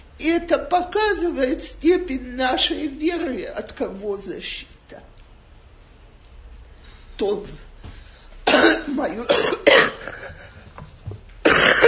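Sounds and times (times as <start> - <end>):
speech: 0.2 - 5.1, 7.2 - 7.7, 8.9 - 10.3
harsh coughing: 8.4 - 10.7, 11.4 - 11.8.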